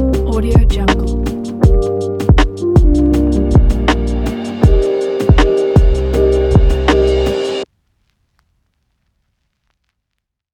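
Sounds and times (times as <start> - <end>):
cozy lofi beat: 0.0 - 7.6.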